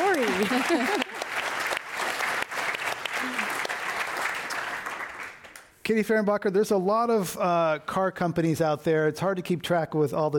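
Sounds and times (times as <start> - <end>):
laughter: 0.0 - 1.3
audience applause: 0.0 - 5.7
speech: 0.4 - 1.0, 5.9 - 10.3.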